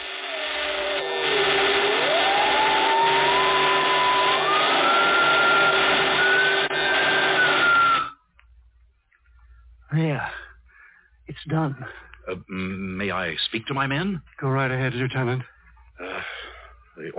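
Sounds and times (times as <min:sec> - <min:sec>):
crackling, buzzing roar of an infernal machine: 0:00.0 - 0:08.1
whining tone: 0:00.0 - 0:08.3
speech: 0:11.6 - 0:15.5.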